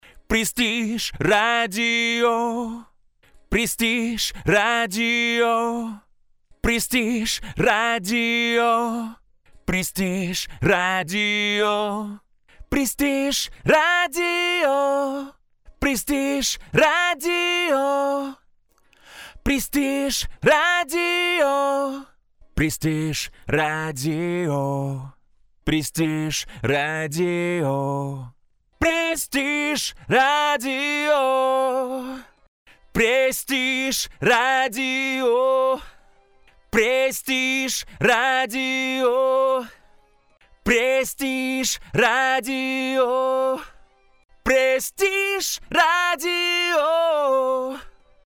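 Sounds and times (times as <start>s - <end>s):
radio vocal: 0.0s - 2.9s, 3.5s - 6.0s, 6.6s - 18.4s, 19.4s - 25.1s, 25.7s - 32.3s, 32.9s - 35.9s, 36.7s - 39.8s, 40.6s - 43.7s, 44.4s - 47.9s.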